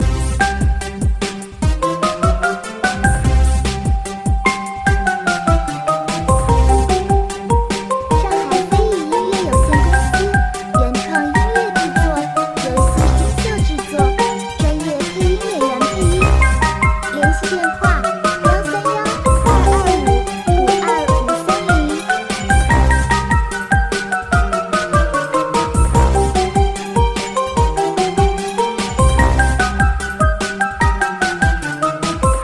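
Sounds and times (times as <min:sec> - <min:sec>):
cute cheerful electronic battle music: 0:00.0 - 0:32.4.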